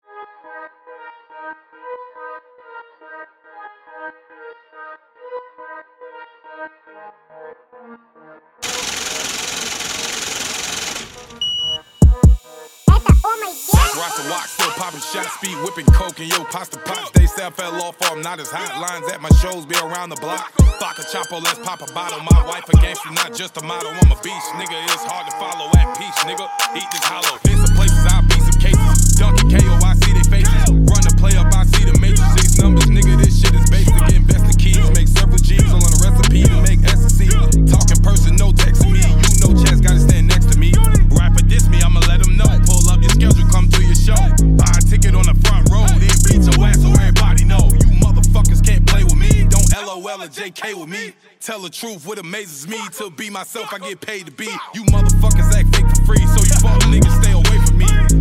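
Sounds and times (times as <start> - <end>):
trap beat remix: 8.6 - 50.0, 54.8 - 58.1.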